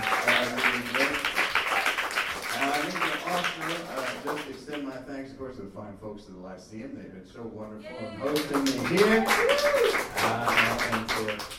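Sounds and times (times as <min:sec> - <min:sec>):
audience applause: 0:00.0 - 0:05.0, 0:08.2 - 0:11.5
speech: 0:05.5 - 0:11.5.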